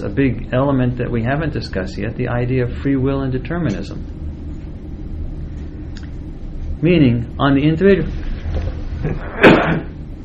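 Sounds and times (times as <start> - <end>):
speech: 0.0 - 4.2, 6.8 - 8.3, 9.0 - 9.9
sneeze: 9.0 - 10.0.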